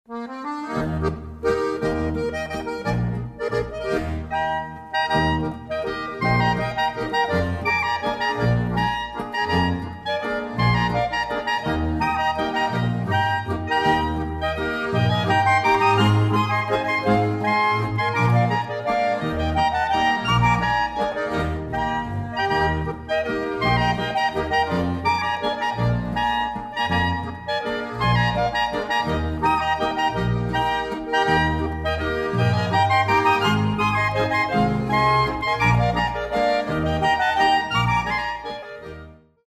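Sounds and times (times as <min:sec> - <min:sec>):
half-waltz music: 0:00.1 - 0:39.4.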